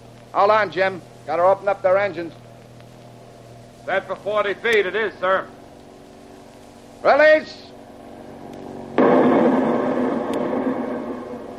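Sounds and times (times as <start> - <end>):
speech: 0.4 - 2.4, 3.9 - 5.6, 7.0 - 7.7
depth charge explosion underwater: 9.0 - 11.5.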